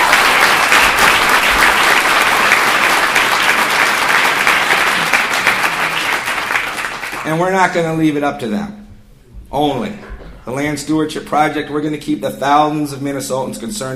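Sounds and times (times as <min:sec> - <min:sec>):
audience applause: 0:00.0 - 0:07.3
speech: 0:07.3 - 0:08.8, 0:09.5 - 0:13.9.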